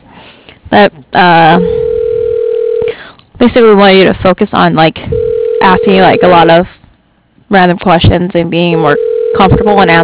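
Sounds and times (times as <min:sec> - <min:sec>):
speech: 0:00.7 - 0:01.8, 0:03.4 - 0:06.8, 0:07.5 - 0:10.0
phone system tone: 0:01.5 - 0:03.0, 0:05.1 - 0:06.5, 0:08.9 - 0:10.0
voice over telephone line: 0:05.6 - 0:06.6, 0:08.6 - 0:10.0.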